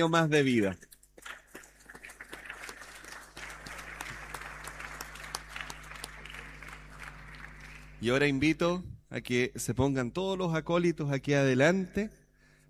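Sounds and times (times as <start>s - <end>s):
speech: 0.0s - 0.9s, 8.0s - 12.2s
audience applause: 1.3s - 8.0s.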